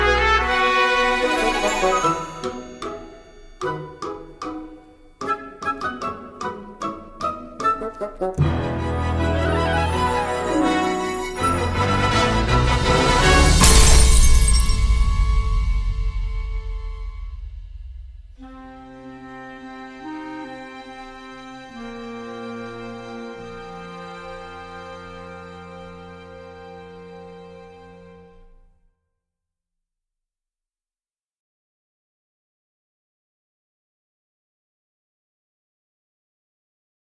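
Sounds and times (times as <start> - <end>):
instrumental music: 0.0 - 28.7.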